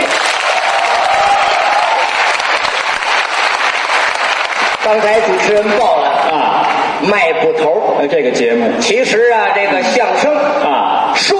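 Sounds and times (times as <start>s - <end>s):
audience applause: 0.0s - 5.4s
speech: 4.9s - 11.3s.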